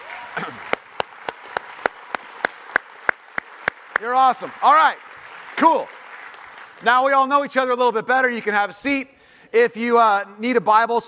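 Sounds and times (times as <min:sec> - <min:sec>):
audience clapping in rhythm: 0:00.0 - 0:08.0
speech: 0:00.4 - 0:00.7, 0:04.0 - 0:06.0, 0:06.8 - 0:11.0.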